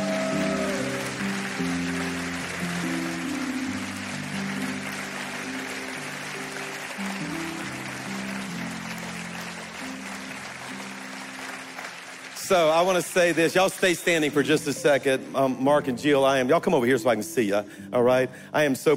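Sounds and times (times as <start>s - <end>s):
audience applauding and clapping: 0.0s - 14.9s
speech: 12.5s - 18.9s.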